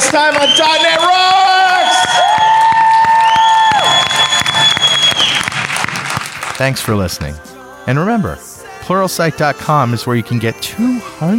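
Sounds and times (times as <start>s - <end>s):
audience applause for panelists: 0.0s - 6.9s
speech: 0.1s - 2.4s, 6.6s - 11.3s.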